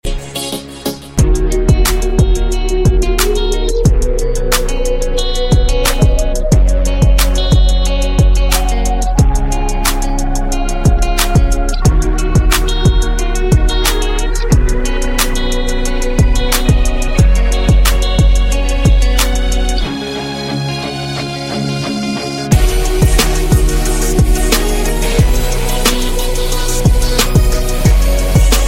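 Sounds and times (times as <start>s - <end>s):
Galaxy J8 musical tone ringtone: 0.2s - 21.6s, 22.4s - 28.6s.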